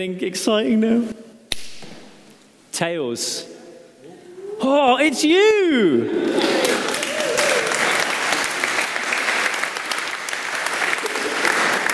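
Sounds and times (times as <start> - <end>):
speech: 0.0 - 1.3, 2.8 - 3.5, 4.6 - 6.8
audience clapping: 6.2 - 11.9.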